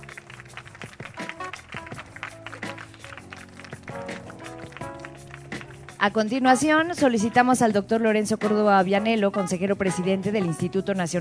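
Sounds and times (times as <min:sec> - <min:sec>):
audience applause: 0:00.0 - 0:06.0
speech: 0:06.0 - 0:11.2.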